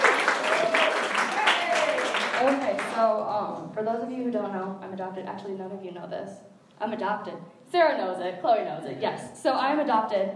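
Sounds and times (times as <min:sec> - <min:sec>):
audience applause: 0:00.0 - 0:03.0
speech: 0:02.4 - 0:10.3.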